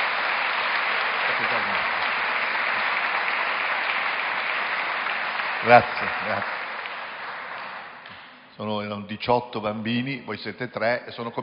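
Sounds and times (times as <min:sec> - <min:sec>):
audience applauding: 0:00.0 - 0:08.3
speech: 0:05.6 - 0:06.6, 0:08.6 - 0:11.4.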